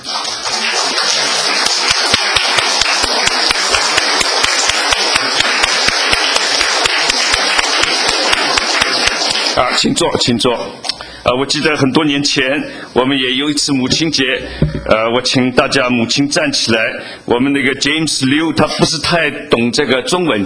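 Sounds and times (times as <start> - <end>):
crowd applauding: 0.0 - 9.8
speech: 9.8 - 20.4.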